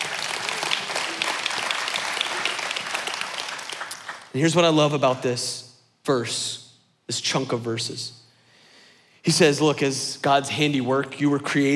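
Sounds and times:
audience applause: 0:00.0 - 0:04.3
speech: 0:04.4 - 0:08.2, 0:09.2 - 0:11.7.

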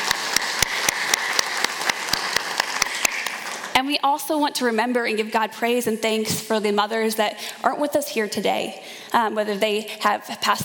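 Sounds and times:
audience applause: 0:00.0 - 0:03.8
speech: 0:03.8 - 0:10.6.

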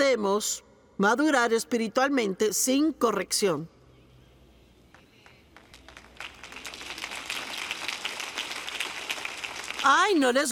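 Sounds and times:
speech: 0:00.0 - 0:03.8, 0:10.1 - 0:10.4
scattered audience applause: 0:05.2 - 0:10.4.

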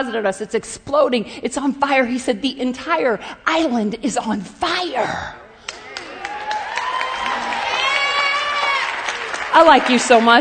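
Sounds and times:
speech: 0:00.0 - 0:05.4, 0:09.5 - 0:10.3
crowd applause: 0:05.6 - 0:10.3
handclaps: 0:05.6 - 0:10.3.

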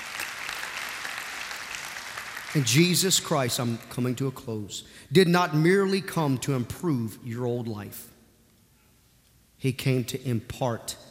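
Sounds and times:
audience clapping: 0:00.0 - 0:04.1
speech: 0:02.5 - 0:08.1, 0:09.6 - 0:11.1.

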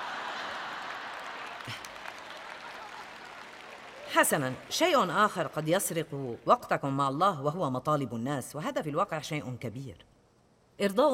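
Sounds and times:
audience clapping: 0:00.0 - 0:06.9
speech: 0:04.1 - 0:10.1, 0:10.8 - 0:11.1.

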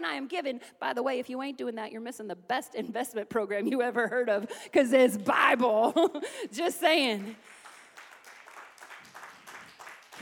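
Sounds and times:
speech: 0:00.0 - 0:07.6
audience clapping: 0:07.1 - 0:10.2.

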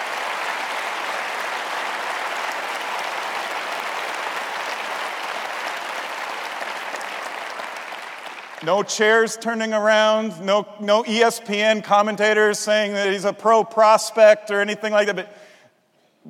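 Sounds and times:
crowd applauding: 0:00.0 - 0:08.7
speech: 0:08.6 - 0:15.4.

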